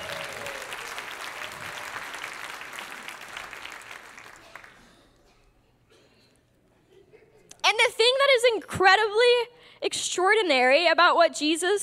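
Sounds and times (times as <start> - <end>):
audience applause: 0.0 - 4.9
speech: 8.5 - 11.8.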